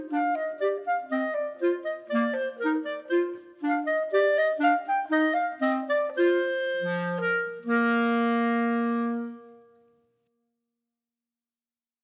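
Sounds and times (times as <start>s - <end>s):
clarinets playing a march: 0.0s - 9.3s.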